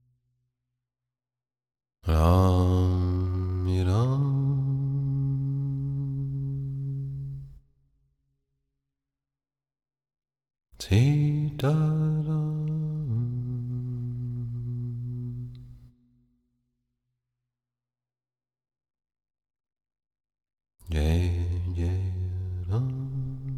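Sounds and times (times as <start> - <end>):
devotional bhajan: 2.0 - 7.6, 10.8 - 15.9, 20.8 - 23.5.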